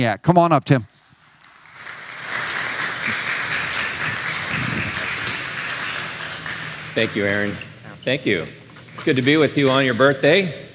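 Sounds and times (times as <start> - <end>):
speech: 0.0 - 0.9, 7.0 - 10.6
audience applause: 1.1 - 7.8.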